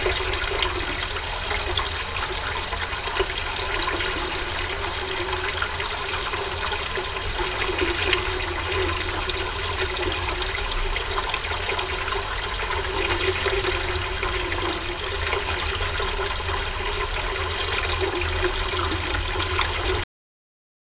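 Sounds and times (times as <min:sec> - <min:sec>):
water fountain: 0:00.0 - 0:20.0.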